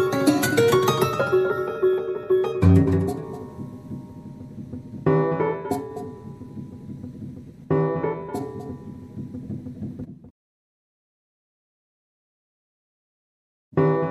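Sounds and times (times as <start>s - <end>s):
piano: 0.0s - 10.3s, 13.8s - 14.0s.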